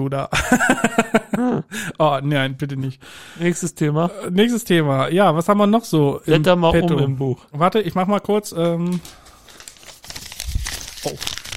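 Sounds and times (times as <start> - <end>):
speech: 0.0 - 9.2
laughter: 0.3 - 2.0
paper note crumpled by hand: 8.8 - 11.5.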